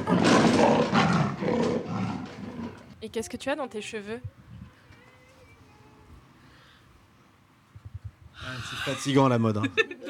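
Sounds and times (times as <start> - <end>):
animal roar sound effect: 0.0 - 2.9
speech: 3.1 - 4.4, 8.5 - 10.0.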